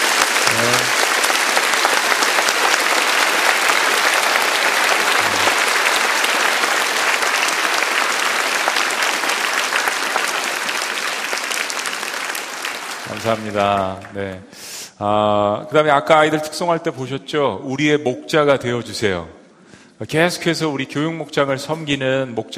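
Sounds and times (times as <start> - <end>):
audience applauding: 0.0 - 14.5
speech: 13.2 - 19.4, 20.0 - 22.5.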